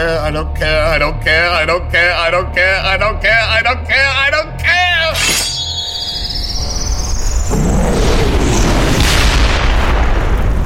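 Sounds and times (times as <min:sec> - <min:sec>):
speech: 0:00.0 - 0:05.3
high thin whine: 0:05.1 - 0:06.9
deep explosion with rising mushroom cloud: 0:07.4 - 0:10.6.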